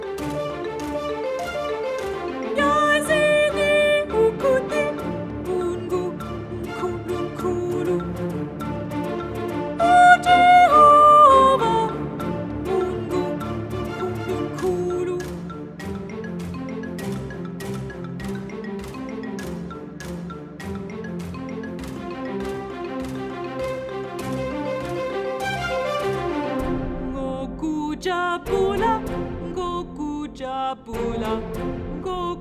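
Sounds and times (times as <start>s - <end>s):
soprano singing: 0.3s - 15.7s, 22.5s - 32.3s.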